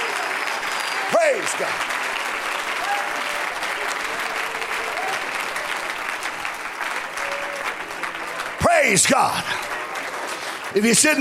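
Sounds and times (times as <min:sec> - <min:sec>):
audience clapping hands: 0:00.0 - 0:11.2
speech: 0:01.1 - 0:02.0, 0:08.8 - 0:09.8, 0:10.7 - 0:11.2.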